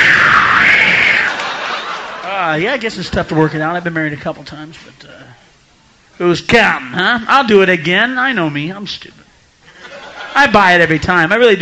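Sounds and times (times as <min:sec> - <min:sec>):
laughter: 0:01.0 - 0:03.4, 0:09.7 - 0:10.6
audience applause: 0:01.2 - 0:02.6
speech: 0:02.5 - 0:05.4, 0:06.2 - 0:09.2, 0:10.3 - 0:11.5.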